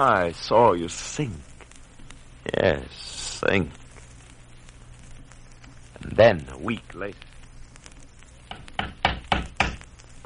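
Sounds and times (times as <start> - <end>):
speech: 0.0 - 1.5, 2.4 - 3.8, 6.0 - 7.3
knocking on a door: 8.5 - 9.8.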